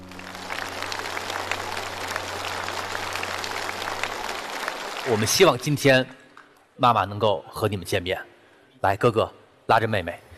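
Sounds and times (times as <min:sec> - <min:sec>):
audience applause: 0:00.0 - 0:06.6
speech: 0:05.0 - 0:06.2, 0:06.8 - 0:10.2.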